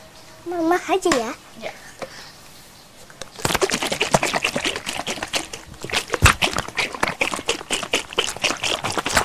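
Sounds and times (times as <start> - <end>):
speech: 0.4 - 1.9
sugary milk mixture rattling and sloshing as it is stirred and shaken in a sugar container: 3.3 - 9.2.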